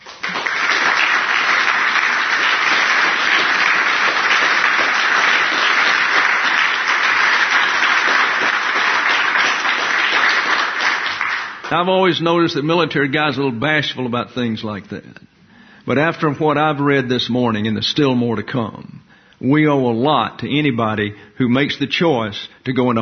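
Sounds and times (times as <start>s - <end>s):
crowd applause: 0.0s - 11.9s
speech: 11.7s - 23.0s.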